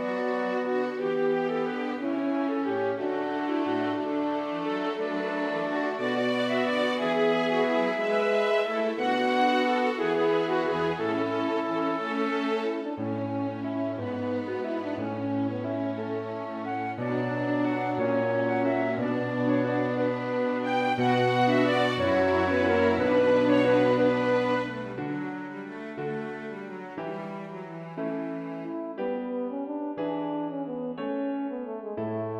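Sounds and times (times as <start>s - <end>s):
horn playing a gigue: 0.0s - 25.9s
two violins playing a gigue: 0.0s - 28.8s
piano playing a gigue: 0.0s - 32.3s.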